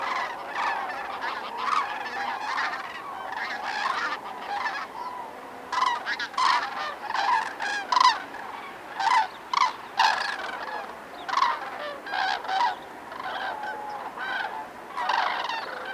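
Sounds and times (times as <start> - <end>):
common cranes in flight at roost: 0.0 - 15.9.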